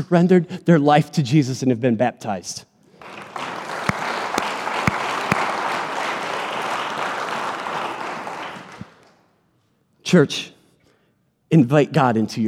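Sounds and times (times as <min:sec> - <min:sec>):
speech: 0:00.0 - 0:03.5, 0:10.1 - 0:10.6, 0:11.5 - 0:12.4
audience cheering and applauding: 0:03.0 - 0:09.1.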